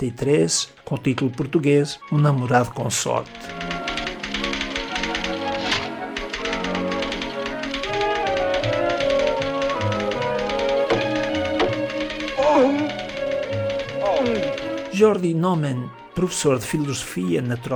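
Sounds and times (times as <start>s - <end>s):
speech: 0.0s - 3.8s, 15.0s - 17.7s
orchestral accompaniment of strings and brass: 0.0s - 17.7s
typewriter clacking: 2.6s - 15.4s.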